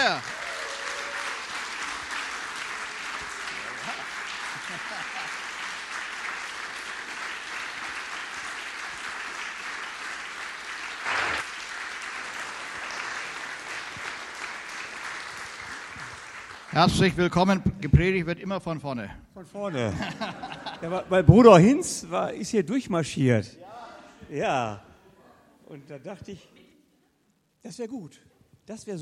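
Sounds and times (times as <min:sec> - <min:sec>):
crowd applauding to welcome a pastor in a gospel church: 0:00.0 - 0:17.4
laughter: 0:03.5 - 0:05.6, 0:19.7 - 0:21.4
speech: 0:16.7 - 0:23.6, 0:24.3 - 0:24.9, 0:25.7 - 0:26.6, 0:27.6 - 0:29.0.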